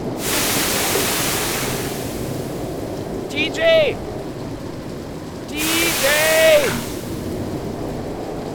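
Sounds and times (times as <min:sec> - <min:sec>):
surf crashing: 0:00.2 - 0:03.8, 0:05.5 - 0:08.0
rough sea and steady wind around a boat: 0:00.2 - 0:04.2, 0:05.5 - 0:08.4.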